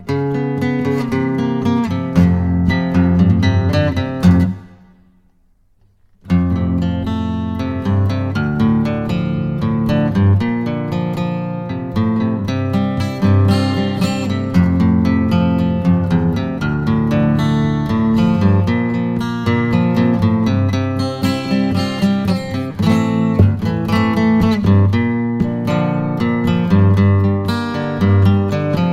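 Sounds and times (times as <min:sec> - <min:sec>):
solo guitar: 0:00.0 - 0:28.9.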